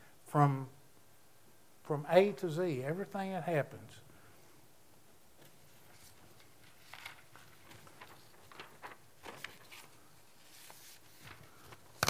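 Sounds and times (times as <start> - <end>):
speech: 0.3 - 0.8, 1.9 - 4.0
shuffling papers: 5.4 - 12.0.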